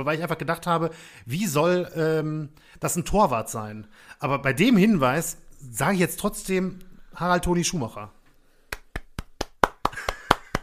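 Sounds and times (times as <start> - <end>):
speech: 0.0 - 8.2
rhythmic hand claps in a football quiz show: 8.7 - 10.6.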